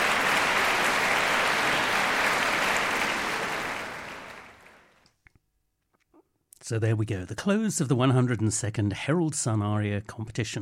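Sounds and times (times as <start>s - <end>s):
audience applause: 0.0s - 4.9s
speech: 6.7s - 10.6s.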